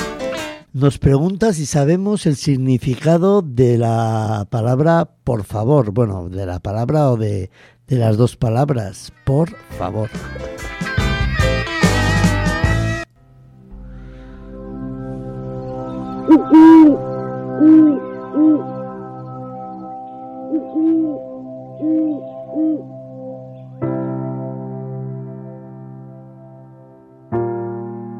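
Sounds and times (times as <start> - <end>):
music: 0.0 - 0.7, 9.1 - 28.1
speech: 0.7 - 10.9, 16.3 - 17.0, 17.6 - 18.7
owl hooting: 16.2 - 18.8, 20.4 - 23.1.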